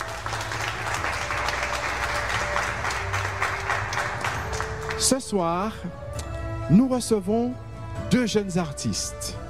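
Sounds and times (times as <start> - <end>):
audience applause: 0.0 - 5.2
speech: 5.0 - 6.1, 6.7 - 9.4.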